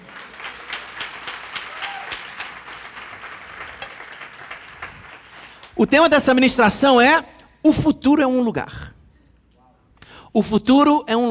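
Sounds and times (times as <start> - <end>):
audience applauding: 0.0 - 6.8
speech: 5.8 - 8.9, 10.4 - 11.2.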